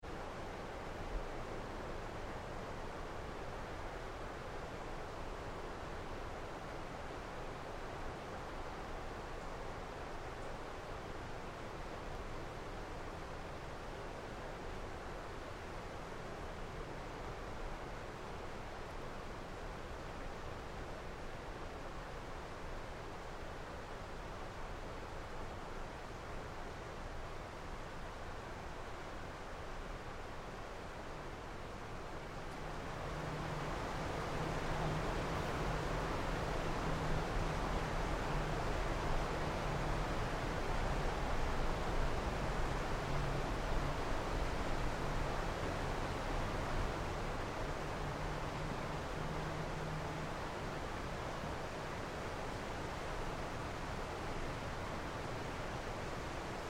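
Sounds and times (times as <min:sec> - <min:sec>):
even breeze through trees in woodlands: 0:00.0 - 0:56.6.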